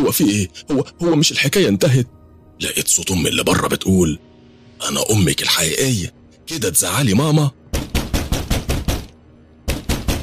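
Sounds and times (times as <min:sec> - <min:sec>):
speech: 0:00.1 - 0:07.6
heavy banging on a door: 0:07.7 - 0:09.1, 0:09.7 - 0:10.2.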